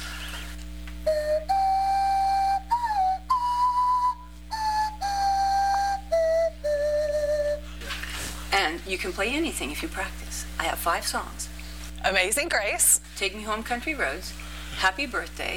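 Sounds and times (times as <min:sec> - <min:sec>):
breathy whistled notes made by blowing across a pop bottle while wiggling the tongue: 0:00.0 - 0:08.0
steady low hum: 0:00.0 - 0:15.5
speech: 0:08.9 - 0:11.5, 0:12.1 - 0:15.5.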